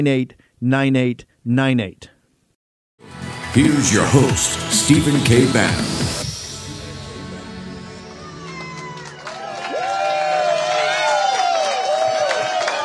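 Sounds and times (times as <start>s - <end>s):
speech: 0.0s - 2.1s, 3.0s - 6.2s
crowd cheering and whooping: 8.0s - 12.8s.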